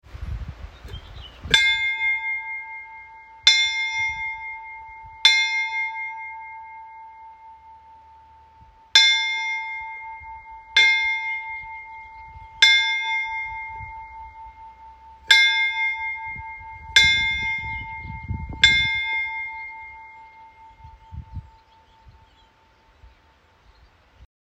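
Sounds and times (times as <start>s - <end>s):
church bells at Bjarnanes churchyard: 1.5s - 23.0s.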